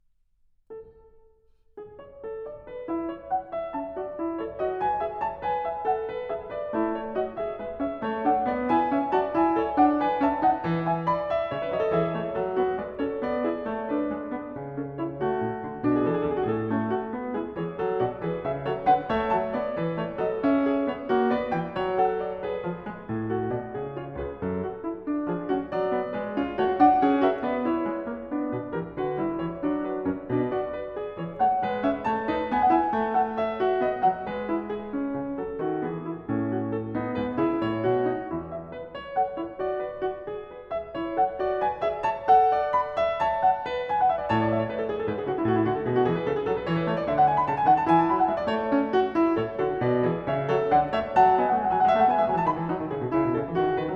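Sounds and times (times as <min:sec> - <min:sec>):
keyboard fugue: 0:01.8 - 0:53.9.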